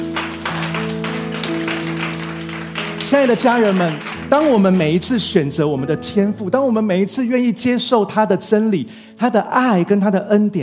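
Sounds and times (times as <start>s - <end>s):
crowd applause: 0.0s - 5.1s
speech: 3.0s - 10.6s.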